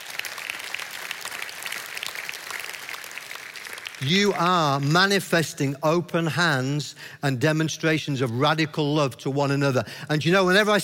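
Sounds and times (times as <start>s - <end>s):
audience applause: 0.0s - 4.9s
speech: 4.0s - 10.8s.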